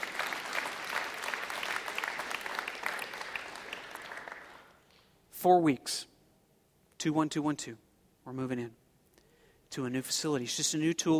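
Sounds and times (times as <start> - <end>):
audience applause: 0.0 - 4.8
speech: 5.4 - 6.1, 7.0 - 8.8, 9.7 - 11.1.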